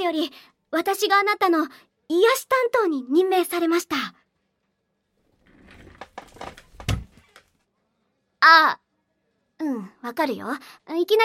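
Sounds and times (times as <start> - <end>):
speech: 0.0 - 4.2, 8.4 - 8.8, 9.6 - 11.2
chair knocked over onto the floor: 5.5 - 7.4.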